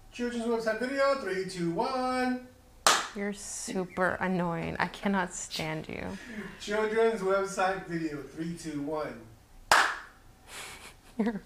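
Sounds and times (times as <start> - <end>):
speech: 0.2 - 2.5, 3.1 - 9.3, 11.2 - 11.4
hand clap marking the take: 2.8 - 3.2, 9.7 - 10.2.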